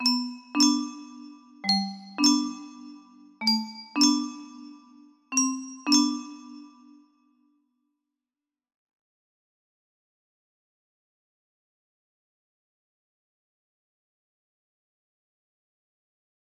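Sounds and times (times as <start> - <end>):
music box melody: 0.0 - 7.2.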